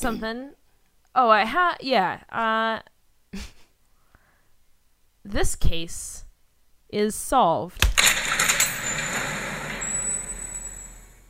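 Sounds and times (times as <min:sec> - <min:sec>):
speech: 0:00.0 - 0:00.6, 0:01.2 - 0:03.6, 0:05.2 - 0:06.2, 0:06.9 - 0:08.4
vault door shutting: 0:08.0 - 0:11.2.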